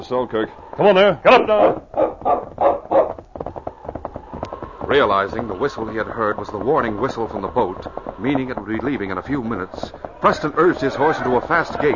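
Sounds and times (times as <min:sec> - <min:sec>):
speech: 0:00.1 - 0:02.7, 0:04.9 - 0:11.9
dog barking: 0:01.4 - 0:03.2.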